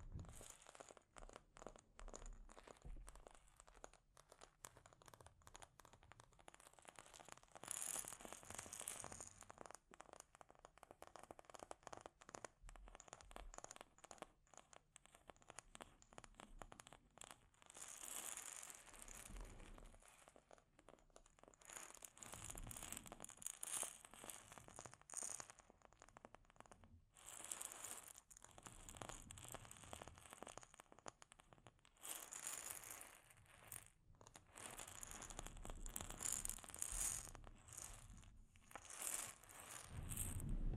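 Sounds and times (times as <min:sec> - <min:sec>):
delicate scratching and tapping on a microphone: 0:00.0 - 0:40.7.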